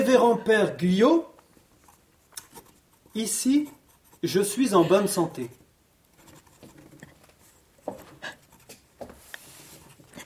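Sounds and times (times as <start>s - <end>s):
speech: 0.1s - 1.3s, 3.2s - 5.6s
pencil held by trembling hands scratching across a sheet of paper: 1.8s - 8.8s.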